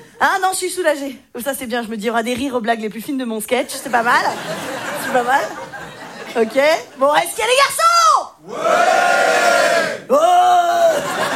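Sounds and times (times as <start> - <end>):
speech: 0.2 - 5.6, 6.3 - 7.9, 8.5 - 9.5
laughter: 3.7 - 7.1, 10.7 - 11.3
men in audience bellowing: 8.4 - 11.3.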